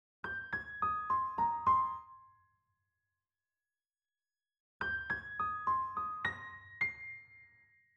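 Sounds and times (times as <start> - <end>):
piano in G sharp major at 105 BPM: 0.2 - 3.2, 4.8 - 7.9.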